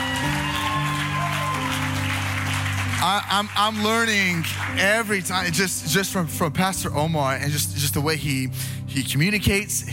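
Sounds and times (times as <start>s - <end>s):
audience applauding pastors: 0.0s - 5.5s
speech: 3.0s - 9.9s.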